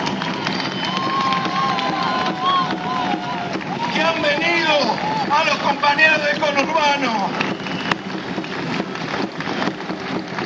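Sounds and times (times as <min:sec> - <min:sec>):
crowd cheering and applauding at a rally: 0:00.0 - 0:10.4
speech: 0:06.0 - 0:07.5.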